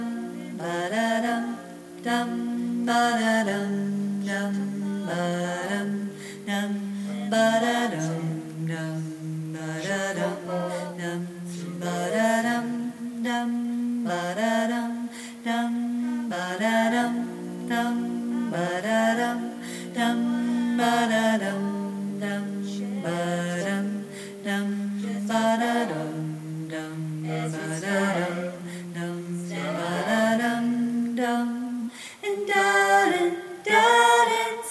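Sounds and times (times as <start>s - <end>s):
tenor singing: 0.0s - 34.7s.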